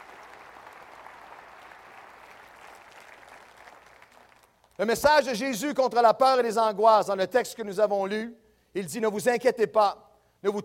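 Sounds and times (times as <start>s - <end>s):
audience applauding loudly: 0.0s - 4.8s
speech: 4.8s - 10.6s.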